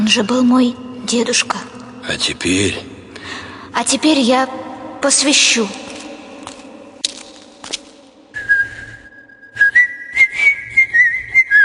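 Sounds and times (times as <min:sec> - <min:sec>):
speech: 0:00.1 - 0:05.9
person whistling in a chapel: 0:08.4 - 0:11.6.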